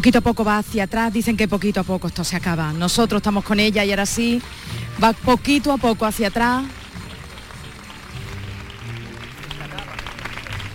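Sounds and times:
speech: 0:00.0 - 0:06.8
crowd applause during a procession: 0:03.3 - 0:10.7.

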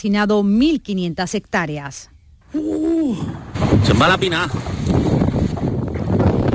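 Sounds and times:
speech: 0:00.0 - 0:05.2
wind whipping through a wildfire: 0:02.6 - 0:06.5.

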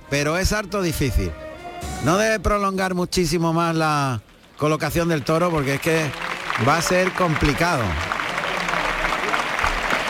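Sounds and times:
speech: 0:00.1 - 0:08.1
bullring crowd applauding a bullfighter: 0:04.4 - 0:10.0.

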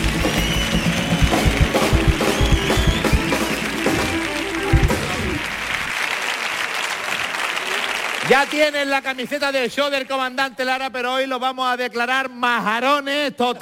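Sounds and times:
audience applause: 0:00.0 - 0:09.2
speech: 0:08.3 - 0:13.6.

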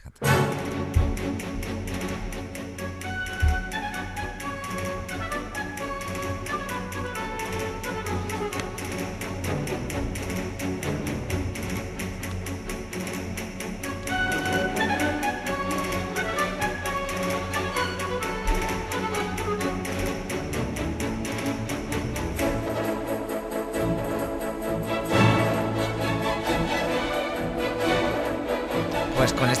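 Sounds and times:
orchestral Spanish dance ballet music: 0:00.2 - 0:29.5.

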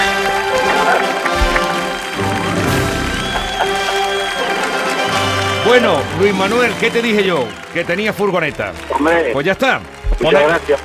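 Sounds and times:
audience applause: 0:00.0 - 0:10.8
crowd voices: 0:00.0 - 0:10.8
speech: 0:05.7 - 0:10.8.

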